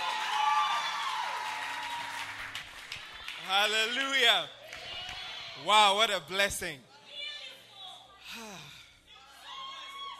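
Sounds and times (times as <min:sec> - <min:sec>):
crowd clapping: 0:00.0 - 0:05.2
speech: 0:03.5 - 0:04.6, 0:05.6 - 0:06.9.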